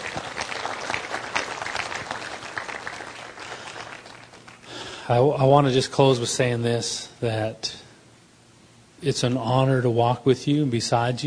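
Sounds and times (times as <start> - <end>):
audience applause: 0.0 - 4.9
speech: 5.1 - 7.8, 9.0 - 11.2.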